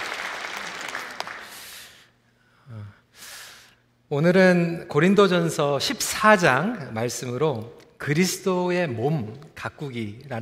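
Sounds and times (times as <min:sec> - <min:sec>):
crowd applause: 0:00.0 - 0:01.8
breathy hiss: 0:01.3 - 0:03.9
speech: 0:04.1 - 0:10.4.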